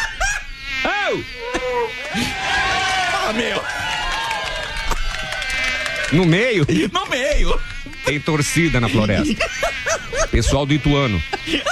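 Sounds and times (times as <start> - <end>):
laughter: 0.0 - 0.5, 1.4 - 11.6
Aedes aegypti mosquito buzzing: 0.0 - 2.4, 7.6 - 11.6
speech: 1.1 - 2.4, 3.3 - 3.8, 6.1 - 11.6.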